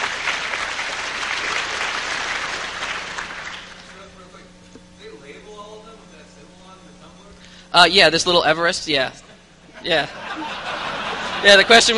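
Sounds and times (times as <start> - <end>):
audience applause: 0.0 - 4.0
speech: 7.8 - 9.2, 9.8 - 10.5, 11.4 - 11.9
laughter: 9.2 - 11.9.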